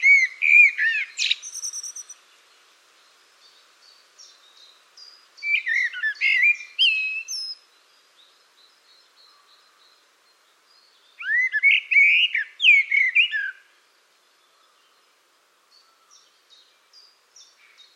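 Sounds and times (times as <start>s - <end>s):
bird calling: 0.0s - 2.2s, 5.4s - 7.6s, 11.2s - 13.7s.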